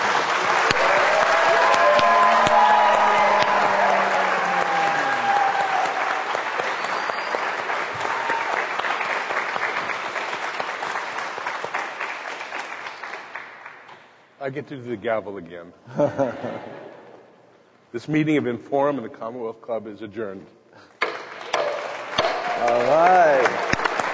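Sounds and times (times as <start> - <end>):
audience applause: 0.0 - 13.8, 21.9 - 24.1
speech: 14.5 - 16.8, 17.9 - 20.6, 22.6 - 23.7
laughter: 15.9 - 17.1.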